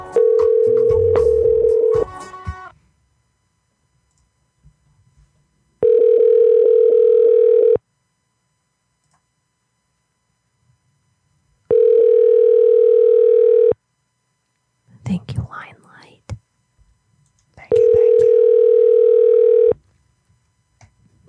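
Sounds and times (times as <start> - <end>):
telephone ring-back tone while a call is placed: 0.1 - 2.1, 5.8 - 7.8, 11.7 - 13.8, 17.8 - 19.8.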